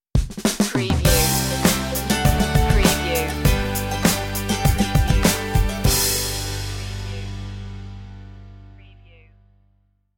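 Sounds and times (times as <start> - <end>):
music stinger: 1.1 - 8.8.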